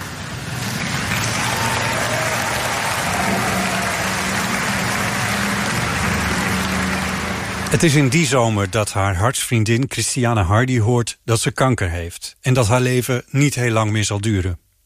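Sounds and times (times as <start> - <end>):
crowd applauding: 0.0 - 9.0
speech: 7.7 - 14.6.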